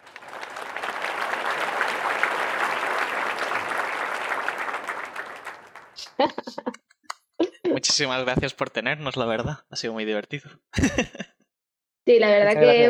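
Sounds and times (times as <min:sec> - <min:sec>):
applause: 0:00.0 - 0:06.2
laughter: 0:06.0 - 0:06.8, 0:10.8 - 0:11.4
speech: 0:06.2 - 0:06.8, 0:08.0 - 0:11.2, 0:12.1 - 0:12.8.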